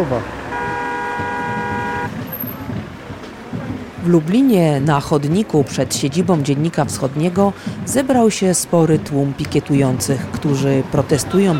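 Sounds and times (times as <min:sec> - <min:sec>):
speech: 0:00.0 - 0:00.4, 0:04.0 - 0:11.5
car horn honking: 0:00.0 - 0:02.5
low rumble of passing traffic: 0:00.0 - 0:11.5.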